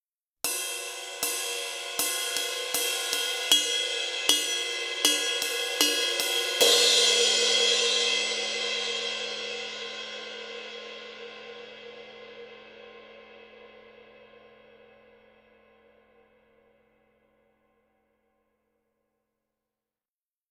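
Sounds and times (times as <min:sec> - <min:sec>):
ride cymbal: 0:00.5 - 0:09.3.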